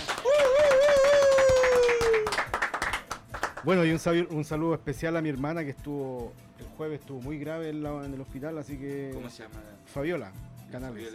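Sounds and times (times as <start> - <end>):
applause: 0.0 - 3.8
speech: 3.6 - 11.1.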